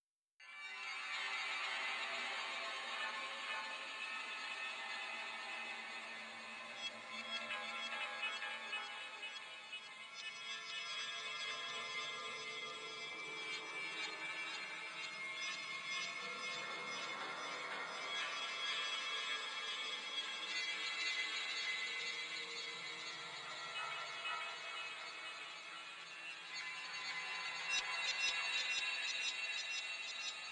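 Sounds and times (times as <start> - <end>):
music: 0.4 - 30.5.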